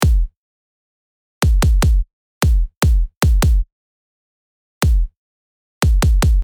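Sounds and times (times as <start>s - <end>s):
kick drum: 0.0s - 0.4s, 1.4s - 3.7s, 4.8s - 5.2s, 5.8s - 6.4s.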